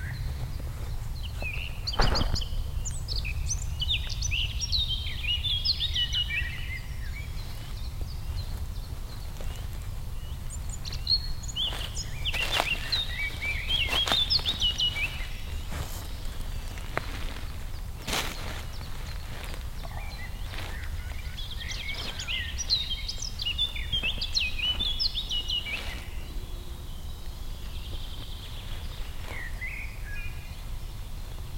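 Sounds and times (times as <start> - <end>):
Liepnitzsee lakeside soundscape: 0.0 - 31.5.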